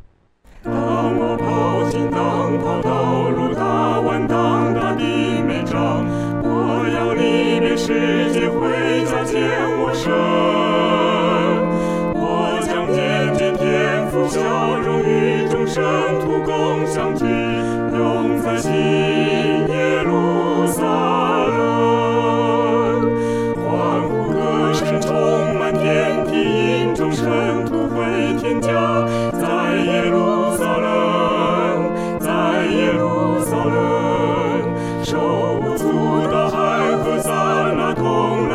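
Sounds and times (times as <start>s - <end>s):
four-part choir singing: 0.5s - 38.5s.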